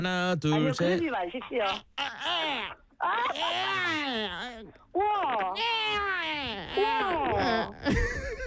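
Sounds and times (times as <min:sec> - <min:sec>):
speech: 0:00.0 - 0:08.2
voice imitating a babbling baby: 0:01.4 - 0:07.8
laughter: 0:07.4 - 0:08.4.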